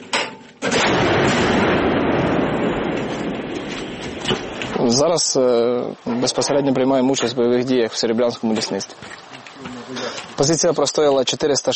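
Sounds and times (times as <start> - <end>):
1947 K-19 anti-aircraft gun firing: 0.6 - 4.8
speech: 4.9 - 9.2, 10.4 - 11.7.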